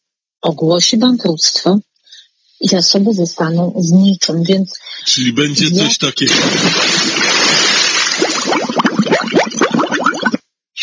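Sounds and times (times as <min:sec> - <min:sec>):
speech: 0:00.4 - 0:01.9, 0:02.6 - 0:07.5
bubbling gurgling plops: 0:06.2 - 0:10.4
splashing water: 0:06.3 - 0:10.4.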